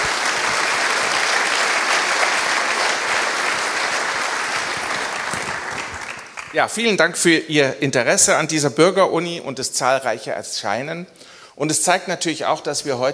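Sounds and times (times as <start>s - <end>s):
audience applause: 0.0s - 6.7s
speech: 6.6s - 13.1s.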